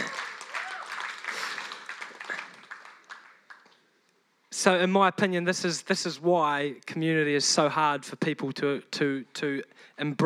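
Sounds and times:
crowd applause: 0.0 - 3.8
speech: 4.6 - 10.2.

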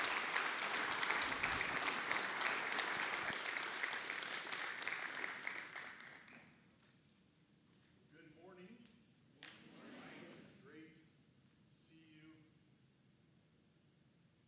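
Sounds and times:
audience applause welcoming a guest speaker: 0.0 - 6.5.

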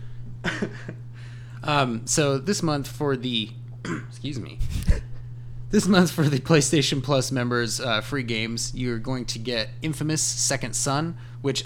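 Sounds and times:
steady low hum: 0.0 - 11.4
throat clearing: 0.4 - 1.0, 3.8 - 4.2
speech: 0.5 - 5.0, 5.7 - 11.6.

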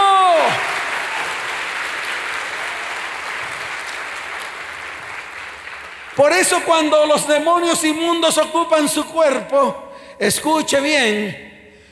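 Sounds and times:
audience applause: 0.0 - 6.6
speech: 6.2 - 11.5.

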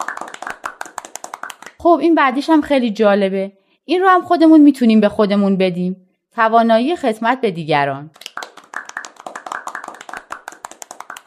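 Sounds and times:
group of people at a gathering clapping: 0.0 - 1.8, 8.2 - 11.2
speech: 1.8 - 8.2.

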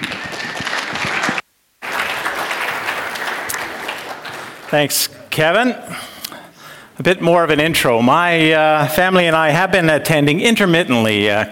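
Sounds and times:
audience applause welcoming a guest speaker to the stage: 0.0 - 5.1
speech: 4.7 - 6.1, 7.0 - 11.5.

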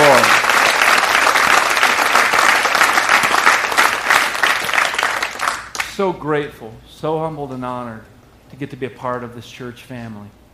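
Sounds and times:
audience applause, hand clapping: 0.0 - 6.0
speech: 6.0 - 10.4.

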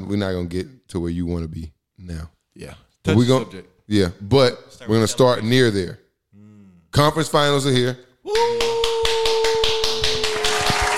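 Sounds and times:
speech: 0.1 - 6.0, 6.9 - 8.9
rhythmic hand claps: 8.3 - 10.9.

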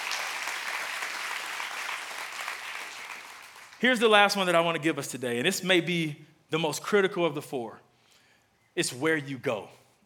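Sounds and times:
audience clapping hands: 0.0 - 4.2
speech: 3.8 - 7.8, 8.8 - 9.8.

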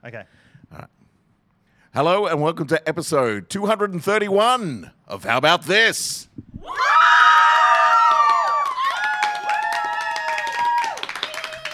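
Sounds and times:
speech: 0.0 - 1.0, 1.9 - 7.6
raucous crowd cheering: 6.6 - 11.7
clapping: 7.7 - 11.7.

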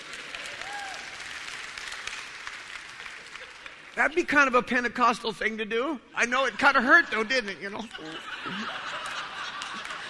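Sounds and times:
audience applause: 0.0 - 4.0, 8.4 - 10.0
speech: 4.0 - 9.0
laughter: 6.4 - 10.0.

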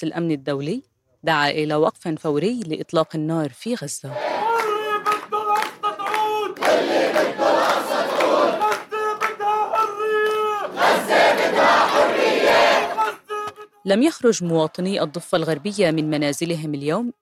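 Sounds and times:
speech: 0.0 - 4.3, 13.8 - 17.1
protest crowd chanting in the street: 4.1 - 13.6
people shouting: 4.1 - 13.7
scattered clapping: 4.4 - 13.6.

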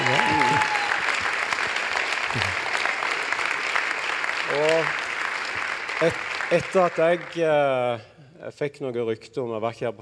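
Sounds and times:
audience applause: 0.0 - 7.9
speech: 6.0 - 10.0.

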